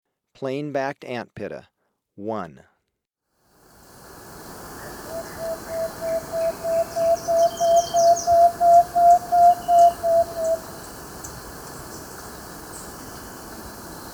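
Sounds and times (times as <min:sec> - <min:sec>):
plain-backed antpitta singing whistled notes in Ecuador: 0:04.8 - 0:14.1.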